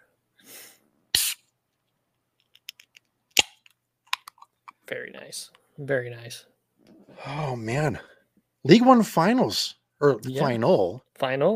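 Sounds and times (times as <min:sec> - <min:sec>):
can of Cosmic Eye cracked open with a pop and fizzing hiss: 0:01.1 - 0:01.5
speech: 0:04.9 - 0:06.5, 0:07.2 - 0:11.5.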